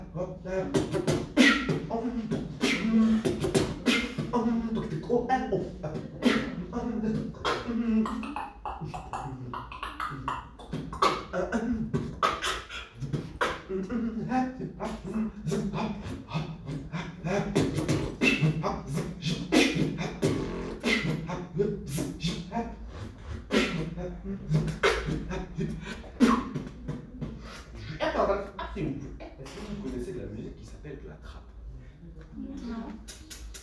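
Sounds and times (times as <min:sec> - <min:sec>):
beatboxing: 0:00.0 - 0:30.0, 0:32.6 - 0:33.6.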